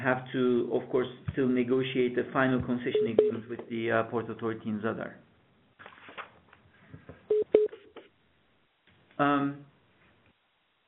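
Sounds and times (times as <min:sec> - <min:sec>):
speech: 0:00.0 - 0:05.3, 0:09.2 - 0:09.7
beeping on a conference call line: 0:03.0 - 0:03.4, 0:07.3 - 0:07.8.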